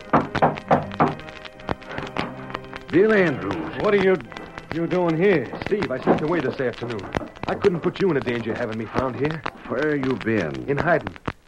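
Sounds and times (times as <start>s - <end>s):
knocking on a door: 0.1s - 1.2s
speech: 2.9s - 11.3s.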